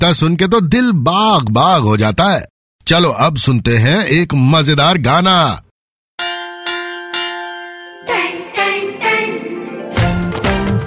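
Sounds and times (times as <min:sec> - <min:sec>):
speech: 0:00.0 - 0:05.6
school bell ringing: 0:06.2 - 0:10.8.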